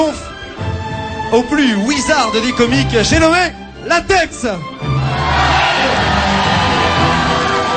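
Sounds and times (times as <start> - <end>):
speech: 1.3 - 4.9
comedy show crowd cheering to welcome a comedian: 4.9 - 7.7.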